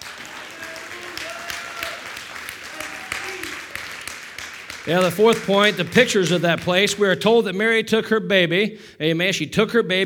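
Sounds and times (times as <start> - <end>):
audience hand clapping: 0.0 - 7.1
speech: 4.8 - 10.0.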